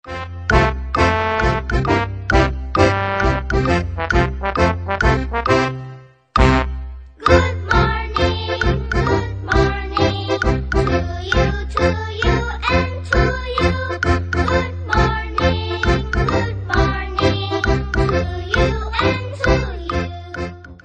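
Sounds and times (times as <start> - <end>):
good morning ringtone: 0.1 - 20.8.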